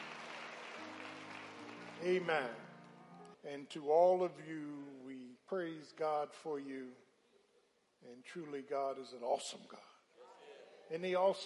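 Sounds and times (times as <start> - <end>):
audience hand clap: 0.0 - 3.4
speech: 2.0 - 2.6, 3.4 - 7.0, 8.0 - 9.9, 10.9 - 11.4.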